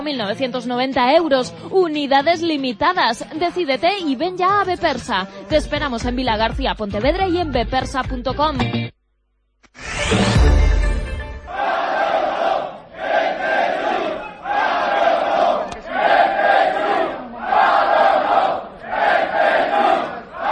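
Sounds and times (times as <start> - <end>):
speech: 0.0 - 9.0, 9.8 - 10.6
protesting crowd chanting outside the Teatro Principal de Pontevedra: 11.5 - 20.5.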